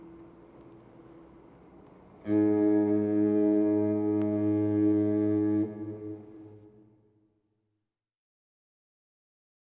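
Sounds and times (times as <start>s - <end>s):
marine foghorn: 2.2s - 7.2s.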